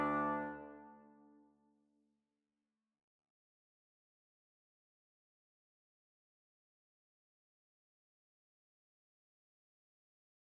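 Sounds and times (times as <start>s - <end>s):
trombone duet: 0.0s - 0.8s.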